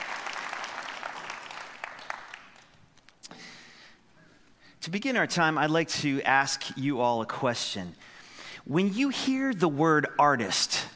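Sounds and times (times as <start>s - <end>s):
audience clapping: 0.0s - 3.2s
speech: 4.9s - 10.8s.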